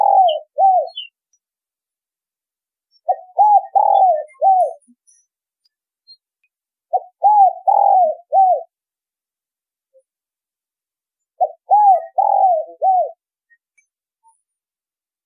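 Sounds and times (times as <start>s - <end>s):
spotted dove cooing: 0.0s - 1.1s, 3.1s - 4.8s, 6.9s - 8.7s, 11.4s - 13.2s.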